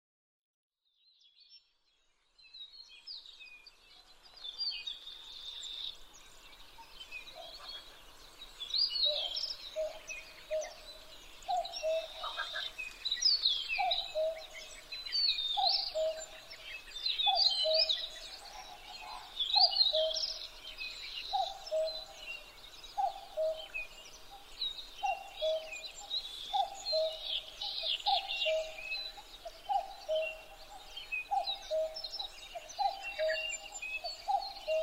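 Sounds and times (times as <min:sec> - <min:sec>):
songbirds chirping: 0:00.8 - 0:34.8
common cuckoo calling: 0:11.5 - 0:13.0, 0:13.8 - 0:14.8, 0:15.5 - 0:16.6, 0:17.2 - 0:20.6, 0:21.2 - 0:34.8.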